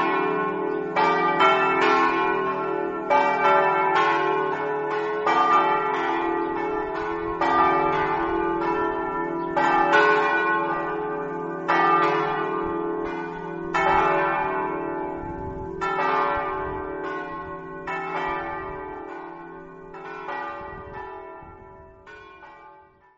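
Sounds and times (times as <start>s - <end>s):
bells ringing: 0.0s - 23.1s.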